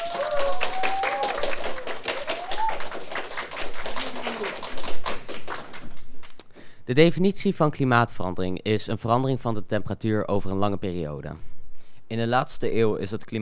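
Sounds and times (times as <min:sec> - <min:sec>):
audience applause: 0:00.0 - 0:06.3
speech: 0:06.9 - 0:11.5, 0:12.1 - 0:13.4.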